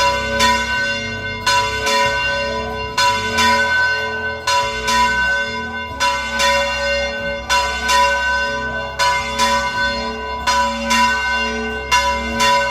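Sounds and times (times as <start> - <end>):
new bell ringing: 0.0 - 12.6.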